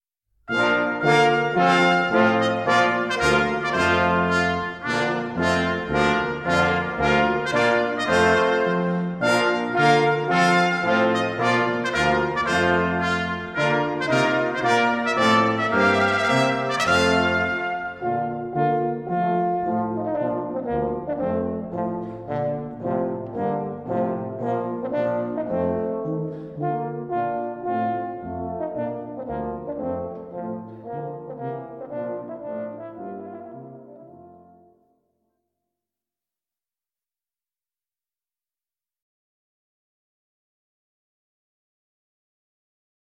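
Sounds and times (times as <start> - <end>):
brass band playing: 0.5 - 34.7
trumpet tune: 0.5 - 34.8.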